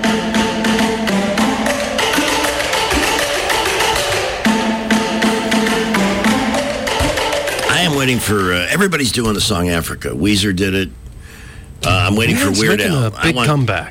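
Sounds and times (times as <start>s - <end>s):
drum corps drumming: 0.0s - 8.3s
speech: 8.0s - 11.0s, 11.8s - 13.8s.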